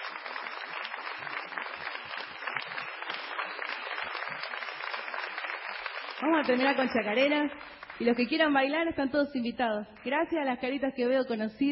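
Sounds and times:
audience applause: 0.0 - 8.2
speech: 6.2 - 11.7.

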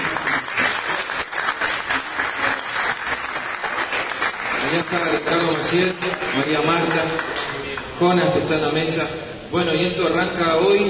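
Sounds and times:
audience applause: 0.0 - 7.9
speech: 4.7 - 7.4, 8.0 - 10.8.

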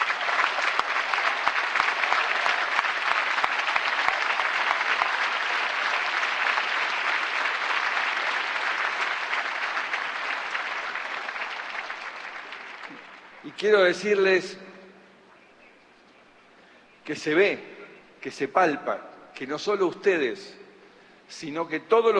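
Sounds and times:
large audience applauding: 0.0 - 14.2
speech: 13.6 - 14.6, 17.1 - 20.6, 21.3 - 22.1.

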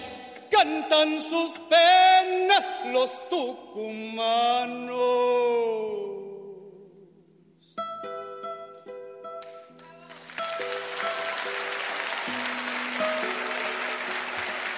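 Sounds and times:
speech: 0.6 - 6.2
audience applause: 9.8 - 14.7.

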